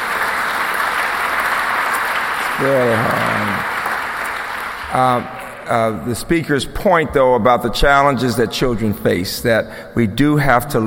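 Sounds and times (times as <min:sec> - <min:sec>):
crowd applauding: 0:00.0 - 0:06.0
person calling out: 0:02.6 - 0:03.6
speech: 0:02.6 - 0:03.7, 0:04.9 - 0:10.8.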